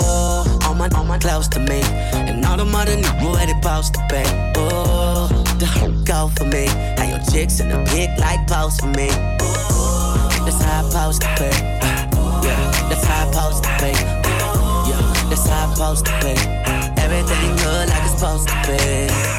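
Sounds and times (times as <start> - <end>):
funk music: 0.0 - 19.3.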